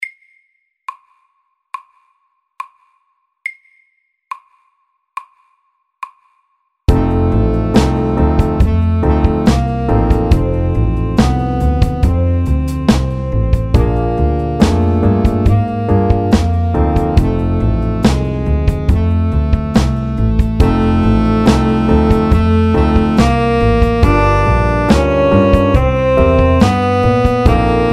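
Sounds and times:
slow chromatic blues: 6.9 - 27.9.

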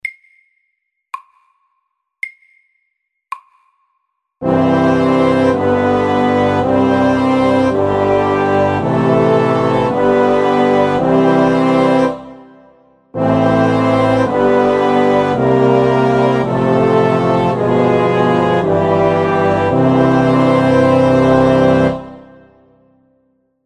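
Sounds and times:
slow chromatic chorale: 4.4 - 23.2.

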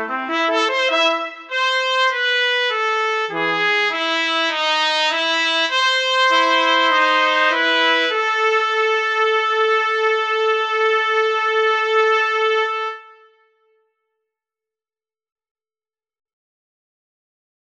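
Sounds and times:
duet in B minor: 0.0 - 13.6.

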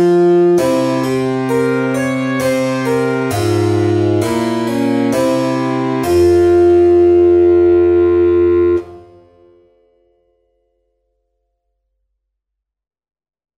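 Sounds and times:
slow minuet: 0.0 - 9.6.

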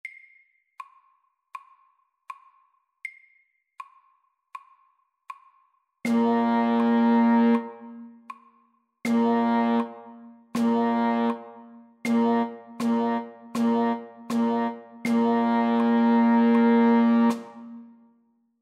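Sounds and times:
slow rhythm in four beats to the bar: 4.6 - 17.9.

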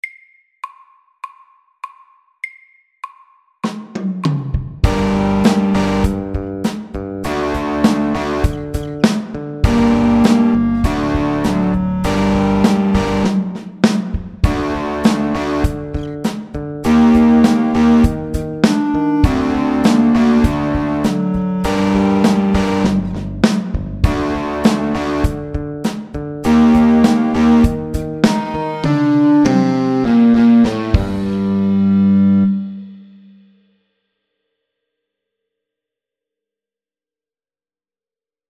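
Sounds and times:
medium electric rock music: 4.8 - 32.8.

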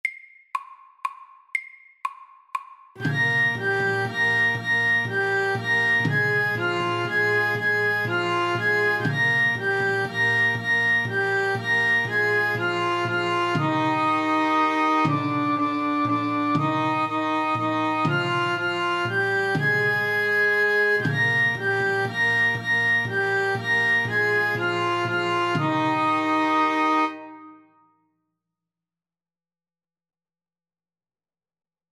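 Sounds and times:
Irish melody: 3.0 - 27.9.

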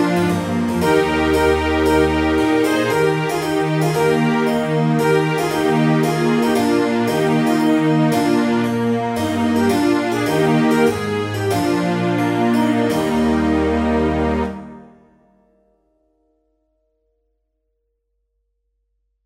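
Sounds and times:
trumpet tune: 0.0 - 15.0.

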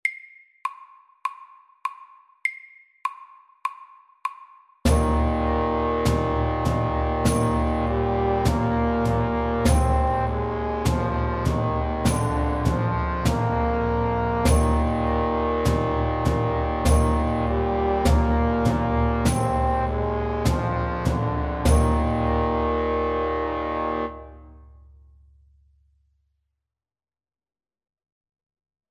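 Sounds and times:
fast English melody: 4.9 - 24.5.

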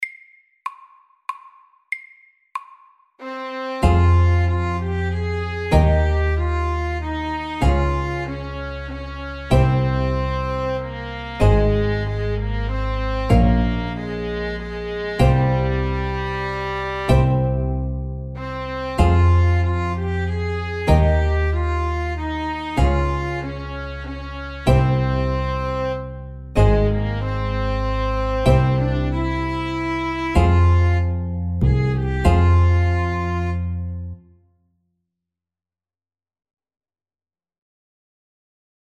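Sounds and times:
fast folk tune: 3.5 - 17.5, 18.4 - 26.0, 26.6 - 33.6.

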